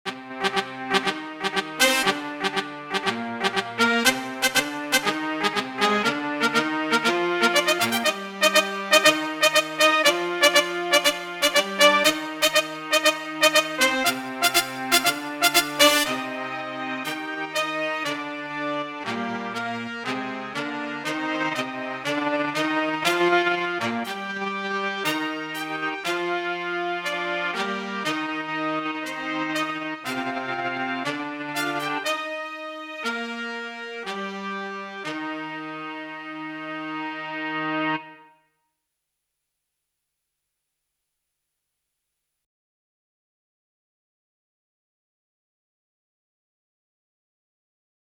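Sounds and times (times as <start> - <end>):
JunoDS88 synth brass section: 0.1 - 38.3.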